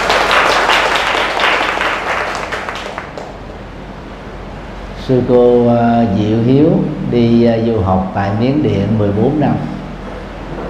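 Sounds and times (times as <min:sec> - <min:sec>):
round of applause: 0:00.0 - 0:03.4
speech: 0:05.1 - 0:09.8.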